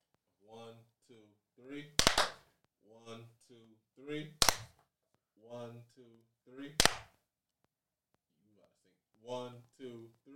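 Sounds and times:
hand clap: 2.0 - 2.5, 4.4 - 4.8, 6.8 - 7.2.

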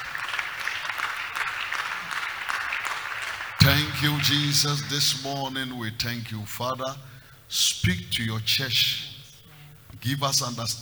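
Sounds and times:
audience clapping: 0.0 - 5.8
speech: 3.7 - 9.1, 10.0 - 10.8.

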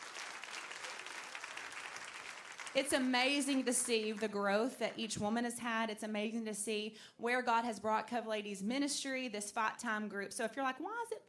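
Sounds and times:
audience applause: 0.0 - 4.4
speech: 2.8 - 11.2.

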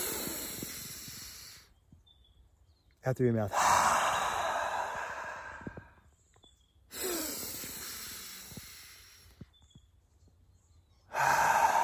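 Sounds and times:
deep breath in through the nose during guided meditation: 0.0 - 1.7, 3.5 - 6.0, 6.9 - 9.5, 11.1 - 11.8
speech: 3.0 - 3.8.

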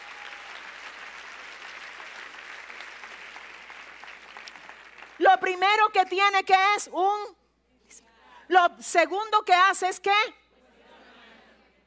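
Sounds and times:
audience applause: 0.0 - 5.2
speech: 5.4 - 10.4.

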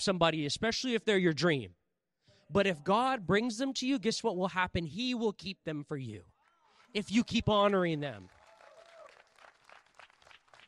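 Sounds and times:
speech: 0.0 - 1.8, 2.5 - 6.3, 6.9 - 8.4
audience clapping: 6.8 - 10.6
high vocal whoop: 8.5 - 9.2.

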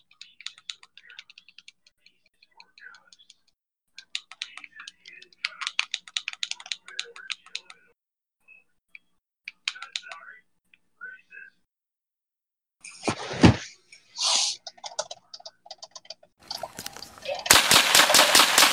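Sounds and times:
scattered clicks: 0.0 - 7.9, 8.9 - 10.4, 14.6 - 18.7
rapid gunfire: 17.5 - 18.7.

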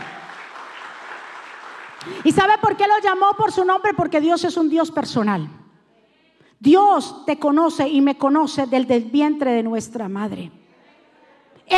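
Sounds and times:
loud audience applause: 0.0 - 2.2
speech: 2.0 - 5.6, 6.6 - 10.6.

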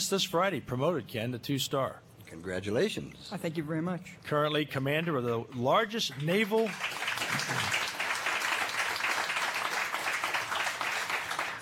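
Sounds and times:
speech: 0.0 - 7.6
audience applause for a newly promoted two-star naval commander: 6.1 - 11.6.

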